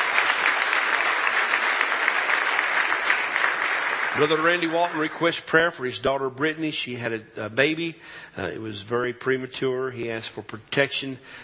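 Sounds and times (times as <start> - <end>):
audience hand clapping: 0.0 - 5.7
speech: 4.2 - 11.4.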